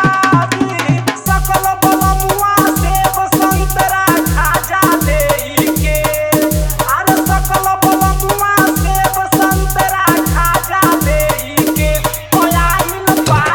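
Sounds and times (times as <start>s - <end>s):
Bhojpuri wedding dholak bass dance mix: 0.0s - 13.5s.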